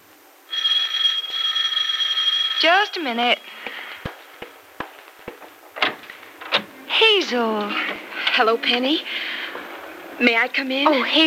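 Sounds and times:
electric doorbell ringing: 0:00.5 - 0:03.8
speech: 0:02.6 - 0:03.6, 0:07.3 - 0:09.3, 0:10.2 - 0:11.2.

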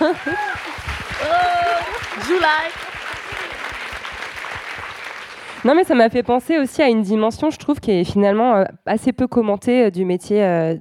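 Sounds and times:
audience clapping: 0:00.0 - 0:06.2
speech: 0:02.3 - 0:02.9, 0:05.6 - 0:10.7.

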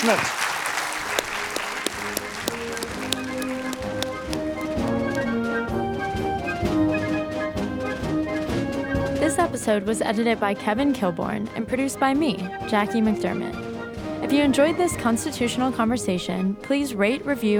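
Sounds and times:
speech: 0:00.0 - 0:00.4, 0:09.5 - 0:13.7, 0:14.3 - 0:17.5
crowd clapping: 0:00.0 - 0:05.4
melodic music bed with sustained tones and light percussive taps: 0:01.1 - 0:17.5.

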